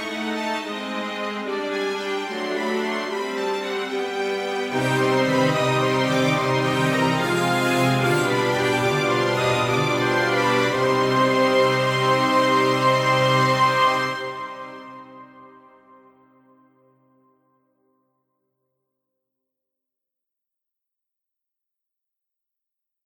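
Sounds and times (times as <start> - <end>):
orchestra: 0.0 - 16.1.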